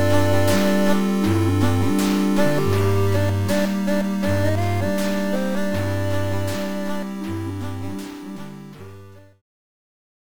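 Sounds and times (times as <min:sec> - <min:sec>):
chiptune music: 0:00.0 - 0:09.4.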